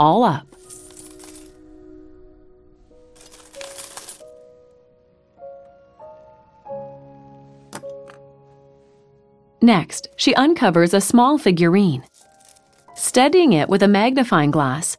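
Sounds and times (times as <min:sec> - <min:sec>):
speech: 0:00.0 - 0:00.6, 0:09.6 - 0:12.1, 0:13.2 - 0:14.9
coins clinking: 0:00.5 - 0:01.6, 0:03.2 - 0:04.3, 0:12.1 - 0:13.0
hands raking through a pile of coins: 0:00.6 - 0:01.5, 0:03.2 - 0:04.2, 0:12.1 - 0:12.9.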